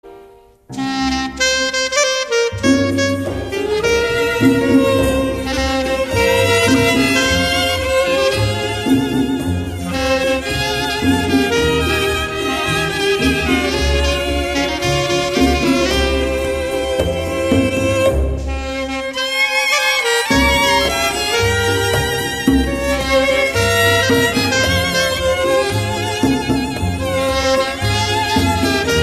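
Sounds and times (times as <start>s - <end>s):
slow music: 0.0s - 29.0s.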